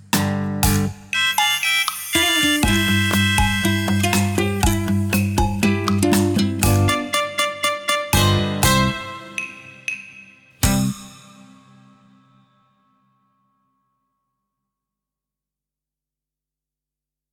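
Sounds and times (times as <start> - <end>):
playful music: 0.6 - 12.1.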